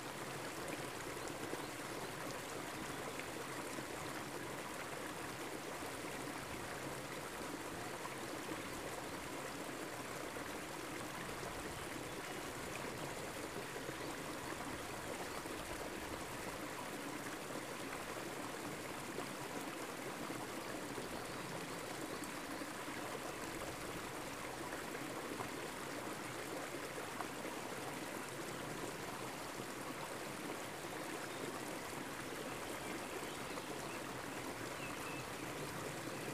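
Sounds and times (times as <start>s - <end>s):
stream flowing in the woods near Solignac France: 0.0s - 36.3s.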